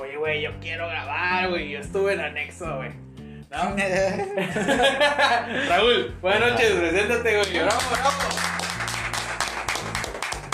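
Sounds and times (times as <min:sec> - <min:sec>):
speech: 0:00.2 - 0:08.5
laughter: 0:04.2 - 0:05.8
applause: 0:07.4 - 0:10.5.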